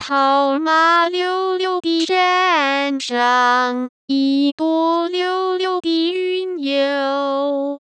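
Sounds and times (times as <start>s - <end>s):
Mandarin synthesized singing voice: 0.0s - 7.8s.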